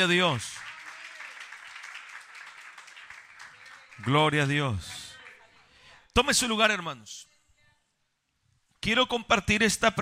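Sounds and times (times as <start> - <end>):
speech: 0.0 - 0.6, 4.0 - 5.0, 6.2 - 7.3, 8.8 - 10.0
audience clapping in praise: 0.0 - 5.4.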